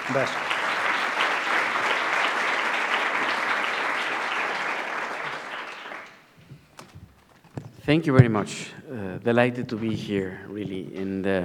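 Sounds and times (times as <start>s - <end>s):
audience applause: 0.0s - 7.3s
speech: 0.1s - 0.5s, 7.9s - 11.4s.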